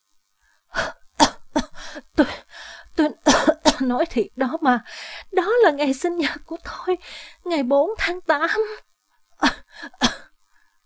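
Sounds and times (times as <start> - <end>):
woman coughing: 0.8 - 2.4, 3.3 - 3.9, 9.4 - 10.3
speech: 2.2 - 2.4, 3.0 - 10.2.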